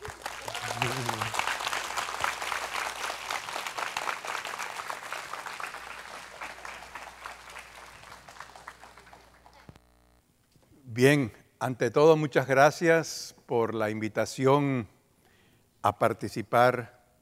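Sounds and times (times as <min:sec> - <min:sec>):
audience applause: 0:00.0 - 0:09.7
speech: 0:00.8 - 0:01.3, 0:11.0 - 0:15.0, 0:15.8 - 0:17.0.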